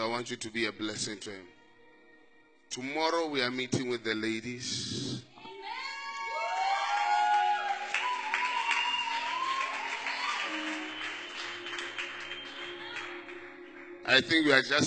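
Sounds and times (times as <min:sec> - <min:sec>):
speech: 0:00.1 - 0:01.6, 0:02.7 - 0:05.3, 0:14.1 - 0:14.8
voices cheering and calling out: 0:05.5 - 0:11.6
crowd clapping hands: 0:06.4 - 0:14.5.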